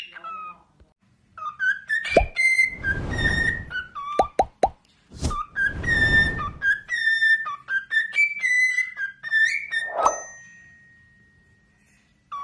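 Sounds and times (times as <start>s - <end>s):
cockatiel whistling: 1.4s - 4.4s, 5.3s - 10.0s
brief rushing sound: 2.2s - 3.9s, 5.2s - 6.8s.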